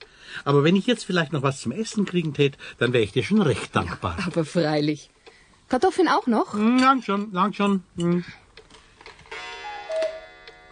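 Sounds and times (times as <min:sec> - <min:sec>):
speech: 0:00.4 - 0:08.4
wooden cuckoo clock striking: 0:09.3 - 0:10.6.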